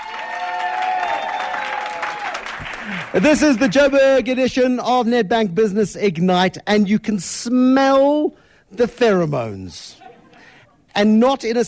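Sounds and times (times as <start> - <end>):
audience applauding: 0.0 - 4.0
speech: 3.1 - 10.0, 11.0 - 11.6.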